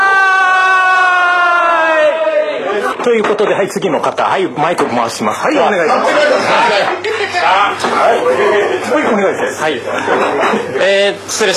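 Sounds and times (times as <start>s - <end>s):
crowd cheering a kanpai toast: 0.0s - 3.0s
laughter: 2.3s - 3.2s, 9.8s - 11.0s
speech: 3.0s - 11.5s.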